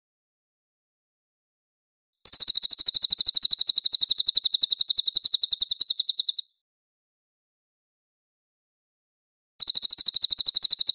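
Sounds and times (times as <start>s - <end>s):
folk song: 2.2s - 6.5s, 9.6s - 10.9s.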